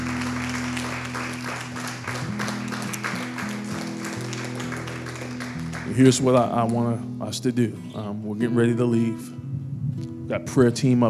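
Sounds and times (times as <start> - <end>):
crowd clapping in praise: 0.0 - 7.1
speech: 6.0 - 9.4, 10.3 - 11.0.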